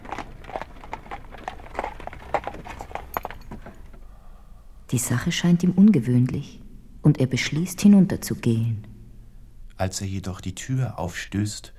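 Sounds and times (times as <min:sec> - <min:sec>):
horse hooves clip-clopping of horse-drawn carriage pulling up: 0:00.0 - 0:04.0
low rumble of carriage wheels: 0:00.0 - 0:04.0
speech: 0:04.9 - 0:08.9, 0:09.8 - 0:11.7.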